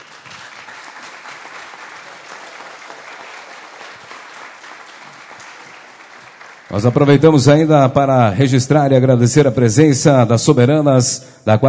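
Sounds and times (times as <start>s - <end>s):
crowd applause: 0.0s - 7.7s
speech: 6.7s - 11.6s.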